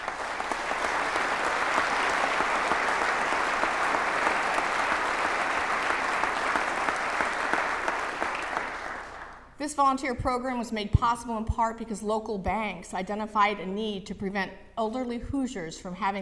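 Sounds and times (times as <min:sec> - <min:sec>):
audience applause: 0:00.0 - 0:09.4
speech: 0:09.7 - 0:16.2.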